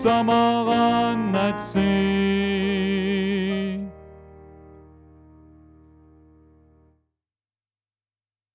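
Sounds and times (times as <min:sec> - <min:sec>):
tenor singing: 0:00.0 - 0:04.1.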